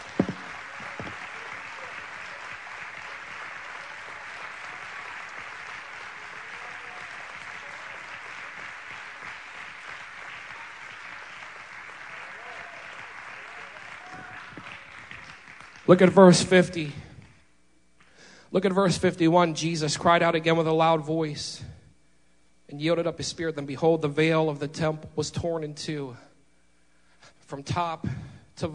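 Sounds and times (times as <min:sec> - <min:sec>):
audience hand clapping in praise: 0:00.0 - 0:16.4
speech: 0:15.9 - 0:17.0, 0:18.5 - 0:21.7, 0:22.7 - 0:26.3, 0:27.5 - 0:28.7.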